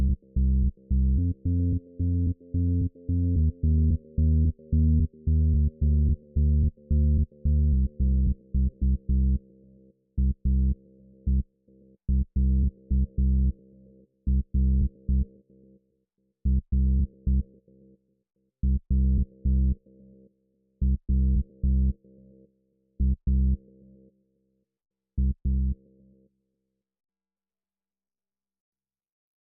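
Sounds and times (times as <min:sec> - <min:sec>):
bass: 0:00.0 - 0:15.5, 0:16.4 - 0:17.6, 0:18.6 - 0:20.1, 0:20.8 - 0:22.1, 0:23.0 - 0:23.8, 0:25.2 - 0:25.9.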